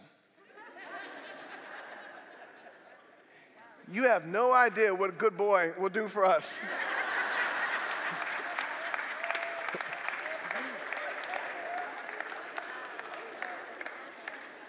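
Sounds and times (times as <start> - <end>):
laughter: 0.4 - 3.5, 6.5 - 14.6
speech: 3.9 - 6.8
crowd clapping: 6.9 - 14.6.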